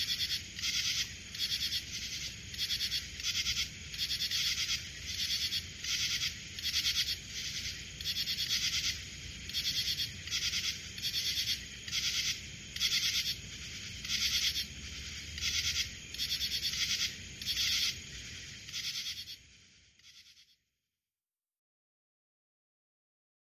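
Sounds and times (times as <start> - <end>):
cricket chirping: 0.0 - 20.8.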